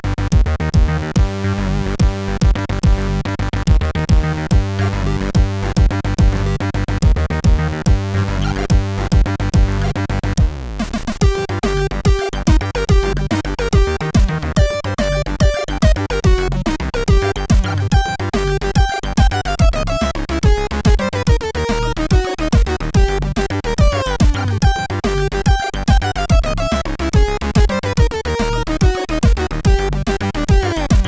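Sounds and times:
upbeat chiptune music on CSG8580R5 SID chip: 0.2 - 31.0.

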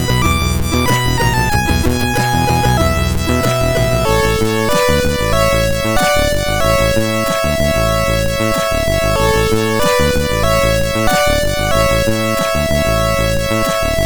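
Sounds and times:
MOS6581R4 SID sound chip tone in A major: 0.0 - 14.0.

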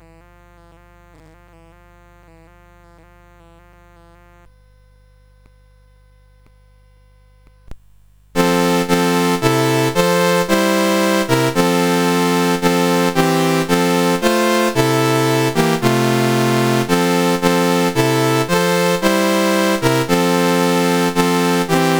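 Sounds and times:
Christmas carol on CSG8580R5 SID chip: 8.4 - 21.9.

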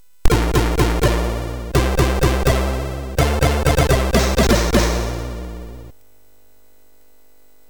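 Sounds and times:
MOS6581 chiptune jingle: 0.3 - 5.9.

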